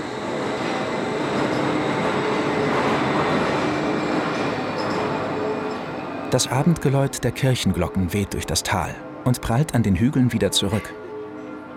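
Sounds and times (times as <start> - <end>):
suspension railway train running on steel track: 0.0 - 9.0
speech: 6.3 - 11.0.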